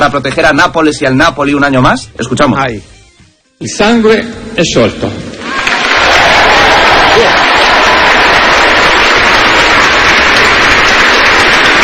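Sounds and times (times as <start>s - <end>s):
speech: 0.0s - 3.0s, 3.6s - 5.3s
large crowd applauding during mass: 5.4s - 11.8s.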